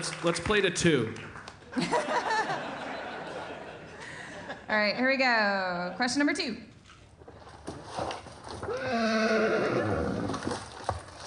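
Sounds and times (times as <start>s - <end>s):
speech: 0.0s - 2.2s, 4.7s - 6.7s
laughter: 1.7s - 4.7s
donkey braying in Brazil: 8.7s - 10.4s.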